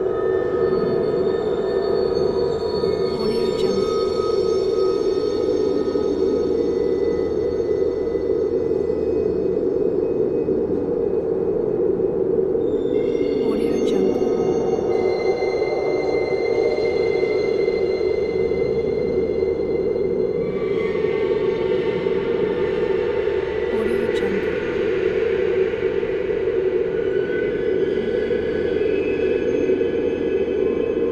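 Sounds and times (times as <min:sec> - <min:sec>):
horror ambience: 0:00.0 - 0:31.1.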